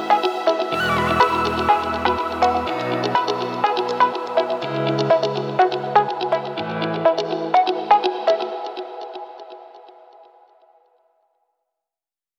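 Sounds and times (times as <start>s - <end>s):
energetic upbeat pop music: 0.0s - 9.2s.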